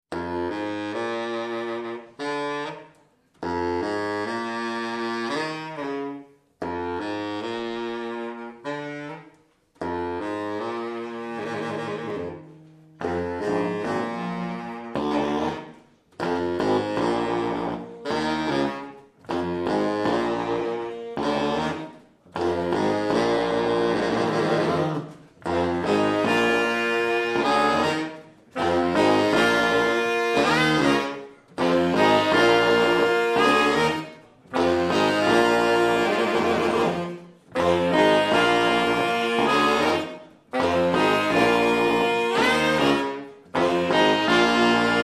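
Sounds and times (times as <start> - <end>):
saxophone music: 0.1 - 45.0.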